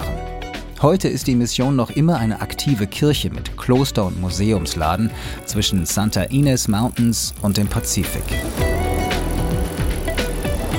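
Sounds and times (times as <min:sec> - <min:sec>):
speech: 0:00.8 - 0:08.7
bicycle rolling road noise on a palm-lined beach bike path: 0:04.4 - 0:10.7
brief rattling bursts of a bicycle: 0:04.7 - 0:10.7
low rhythmic mechanical whir of a bicycle: 0:05.3 - 0:10.7.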